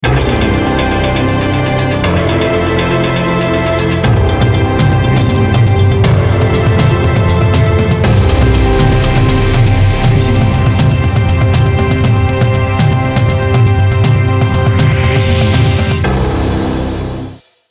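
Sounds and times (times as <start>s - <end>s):
triumphant jingle: 0.0s - 17.2s.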